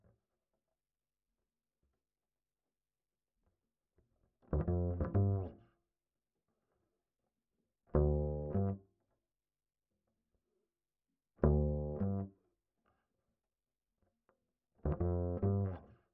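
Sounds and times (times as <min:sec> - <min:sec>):
bass line: 0:04.6 - 0:05.5, 0:08.0 - 0:08.8, 0:11.4 - 0:12.3, 0:14.9 - 0:15.8.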